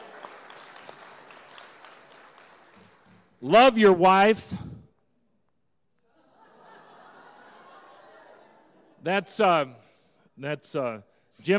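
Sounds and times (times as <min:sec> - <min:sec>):
audience applause: 0:00.0 - 0:03.1
speech: 0:03.4 - 0:04.6, 0:09.0 - 0:09.8, 0:10.4 - 0:11.5
laughter: 0:06.1 - 0:09.1.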